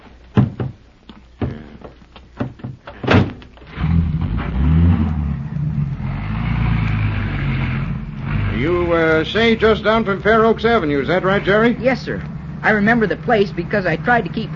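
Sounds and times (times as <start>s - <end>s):
station wagon car doors thunking shut: 2.4s - 3.4s
station wagon engine starting and revving as it pulls away: 3.7s - 14.5s
speech: 9.2s - 14.5s.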